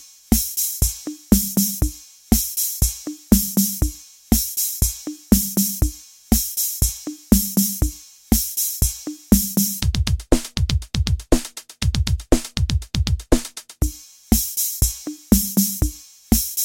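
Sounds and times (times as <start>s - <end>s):
boomwhacker backing beat mix: 0.0s - 16.6s.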